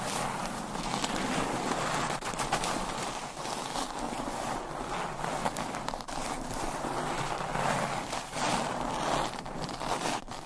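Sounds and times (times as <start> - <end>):
scratching and tracing across a surface: 0.0 - 10.4.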